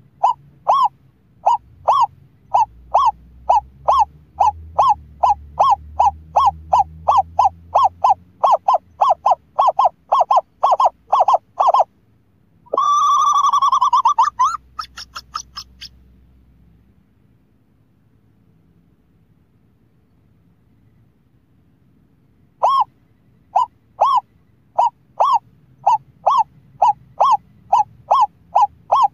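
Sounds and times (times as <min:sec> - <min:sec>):
scops owl hooting: 0:00.0 - 0:11.9, 0:12.7 - 0:16.0, 0:22.6 - 0:29.1.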